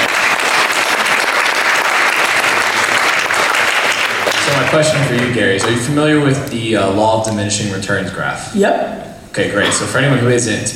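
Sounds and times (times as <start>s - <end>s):
audience clapping: 0.0s - 6.6s
speech: 4.7s - 10.7s.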